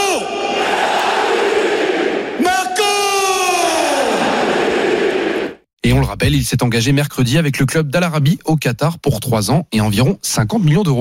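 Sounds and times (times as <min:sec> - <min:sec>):
huge stadium crowd roaring and chanting in unison: 0:00.0 - 0:05.6
speech: 0:06.1 - 0:10.9.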